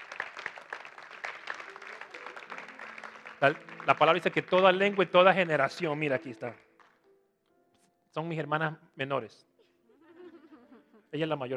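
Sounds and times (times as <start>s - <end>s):
audience applause: 0.0s - 7.0s
speech: 3.4s - 6.6s, 8.2s - 9.5s, 11.1s - 11.5s.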